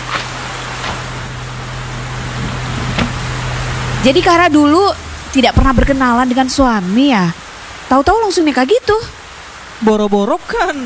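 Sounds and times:
low hum: 0:00.0 - 0:07.9
rain: 0:00.0 - 0:10.8
speech: 0:04.0 - 0:09.2, 0:09.8 - 0:10.8.

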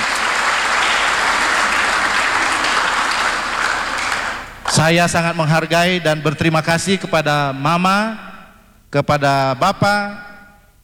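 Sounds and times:
audience applause: 0:00.0 - 0:04.8
speech: 0:04.8 - 0:08.3, 0:08.9 - 0:10.3.

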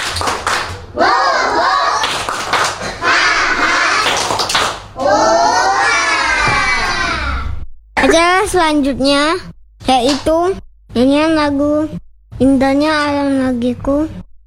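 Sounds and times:
children clapping rhythmically: 0:00.0 - 0:07.0, 0:10.0 - 0:10.4
speech: 0:08.0 - 0:14.2.

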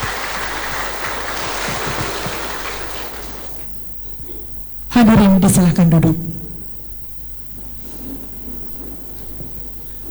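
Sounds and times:
crowd applause: 0:00.0 - 0:03.8
speech: 0:04.9 - 0:06.4.

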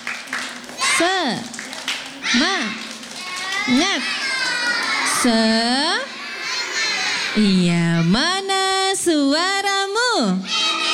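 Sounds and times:
children clapping a rhythmic spirit cheer: 0:00.0 - 0:05.6
children chanting a rhythmic spirit cheer: 0:00.4 - 0:05.4, 0:06.1 - 0:07.6, 0:10.4 - 0:10.9
speech: 0:01.0 - 0:01.6, 0:02.3 - 0:02.8, 0:03.6 - 0:04.2, 0:05.2 - 0:06.1, 0:07.4 - 0:10.6.

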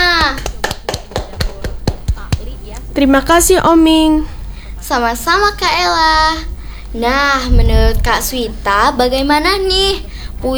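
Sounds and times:
small group clapping after a poem reading: 0:00.0 - 0:03.0
speech: 0:03.0 - 0:04.3, 0:04.9 - 0:10.5.

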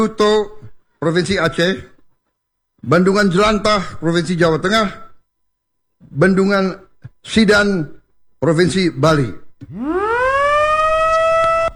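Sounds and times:
speech: 0:00.0 - 0:01.9, 0:02.8 - 0:05.1, 0:06.0 - 0:10.0
loud siren wailing at dam inauguration: 0:09.7 - 0:11.7.

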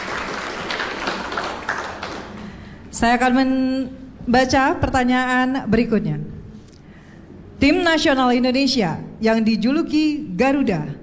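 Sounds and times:
clapping for Team B at an Indonesian quiz competition: 0:00.0 - 0:03.4
speech: 0:03.0 - 0:06.3, 0:07.6 - 0:11.0.

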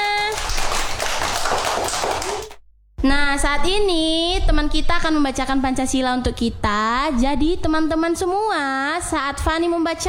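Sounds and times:
group of people clapping hands: 0:00.0 - 0:02.6
speech: 0:03.0 - 0:10.0.

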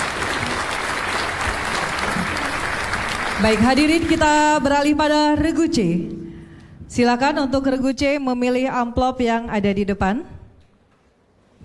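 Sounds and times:
crowd applause: 0:00.0 - 0:04.4
speech: 0:03.4 - 0:06.2, 0:06.9 - 0:10.3.

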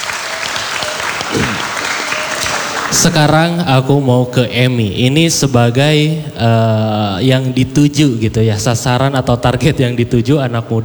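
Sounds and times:
audience applause: 0:00.0 - 0:03.5
speech: 0:03.0 - 0:10.8.

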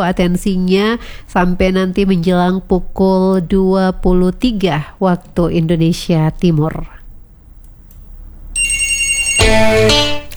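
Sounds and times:
speech: 0:00.0 - 0:07.0
telephone ringing as a listener calls in to a radio show: 0:08.5 - 0:10.3.

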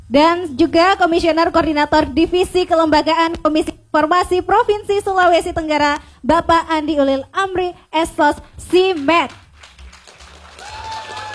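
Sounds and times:
speech: 0:00.1 - 0:09.4
applause: 0:08.7 - 0:11.3.

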